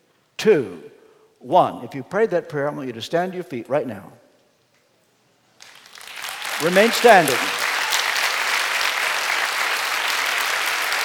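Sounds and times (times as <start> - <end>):
speech: 0.4 - 4.2, 6.6 - 7.6
audience applause: 5.6 - 11.0.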